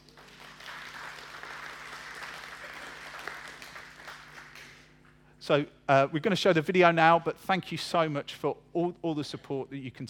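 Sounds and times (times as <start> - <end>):
round of applause: 0.0 - 5.1
speech: 5.5 - 10.0.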